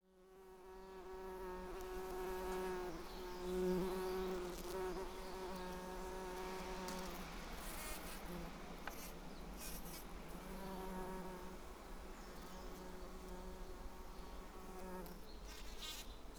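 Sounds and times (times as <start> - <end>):
bumblebee buzzing: 0.6 - 11.6, 12.2 - 16.0.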